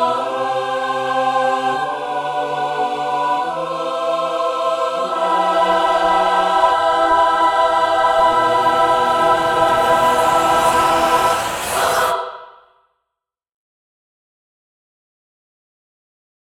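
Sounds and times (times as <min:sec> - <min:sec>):
layered choir singing: 0:00.0 - 0:12.7.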